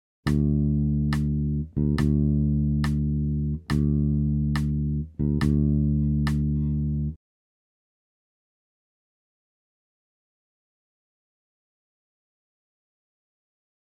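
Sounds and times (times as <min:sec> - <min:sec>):
bass pattern: 0:00.3 - 0:07.2.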